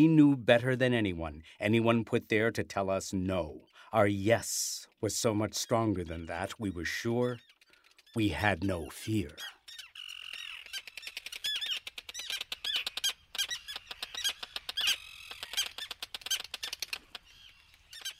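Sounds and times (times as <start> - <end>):
speech: 0.0 - 7.5, 8.2 - 9.6
terns calling from a colony: 4.8 - 18.1.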